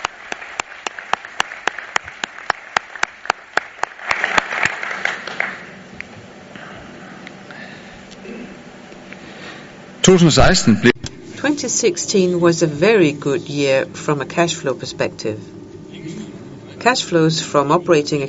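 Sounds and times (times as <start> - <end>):
audience applause at meeting: 0.0 - 5.8
sharp claps: 0.0 - 6.1
soft murmur: 6.2 - 18.2
speech: 10.1 - 10.9, 11.6 - 15.6, 16.8 - 18.2.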